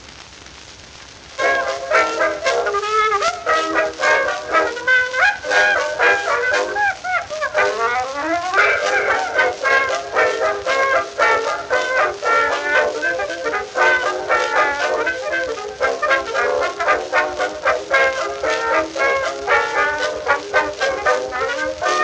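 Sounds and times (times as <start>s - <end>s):
foxtrot dance music: 1.4s - 22.0s.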